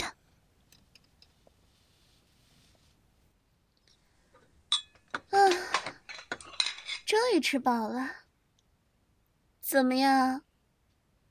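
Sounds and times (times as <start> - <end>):
dishes and cutlery clattering as a mother prepares a meal: 4.7 - 7.1
speech: 7.1 - 8.2, 9.7 - 10.5.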